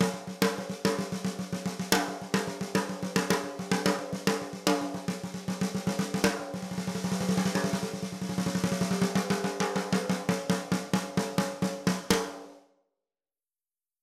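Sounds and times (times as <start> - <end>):
12x7 snare drums: 0.0 - 12.6.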